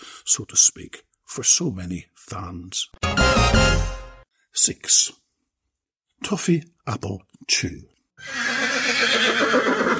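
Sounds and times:
speech: 0.3s - 3.9s, 4.6s - 5.2s, 6.2s - 9.9s
horse neighing: 8.2s - 9.9s.

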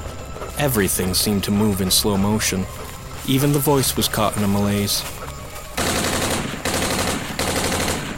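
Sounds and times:
speech: 0.6s - 5.2s
rapid automatic rifle fire into creatures overrunning a camp: 5.8s - 8.1s.

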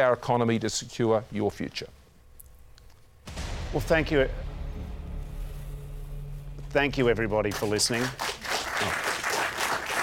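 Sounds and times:
speech: 0.0s - 2.0s, 3.7s - 4.9s, 6.7s - 9.1s
audience applause: 7.5s - 10.0s.

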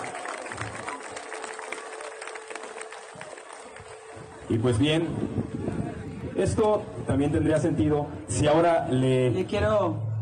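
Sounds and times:
audience applause: 0.0s - 5.1s
speech: 4.5s - 10.1s.

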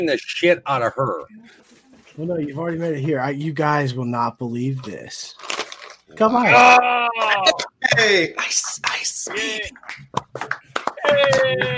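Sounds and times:
speech: 0.0s - 5.5s, 6.1s - 11.7s
audience clapping: 9.3s - 11.7s.

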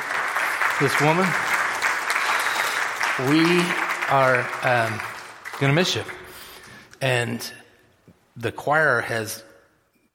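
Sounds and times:
audience applause: 0.0s - 6.5s
speech: 0.8s - 1.5s, 3.2s - 6.2s, 7.0s - 7.6s, 8.4s - 9.5s.

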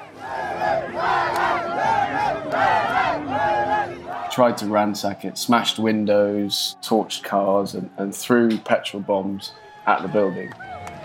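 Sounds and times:
crowd chanting an anti-French slogan outside the French embassy in Niamey Niger: 0.0s - 4.8s
speech: 4.4s - 10.7s.

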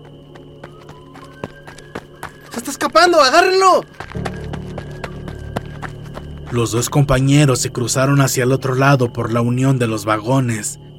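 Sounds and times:
running footsteps: 0.0s - 7.6s
speech: 2.7s - 4.0s, 6.5s - 10.8s.

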